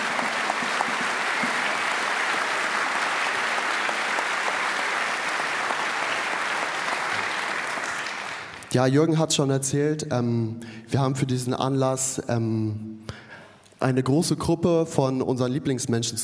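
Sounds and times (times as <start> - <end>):
audience applause: 0.0 - 8.7
speech: 8.7 - 13.2, 13.8 - 16.2.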